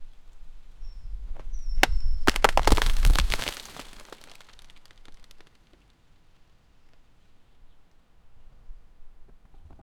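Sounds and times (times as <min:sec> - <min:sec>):
heavy tree falling: 0:01.8 - 0:05.5.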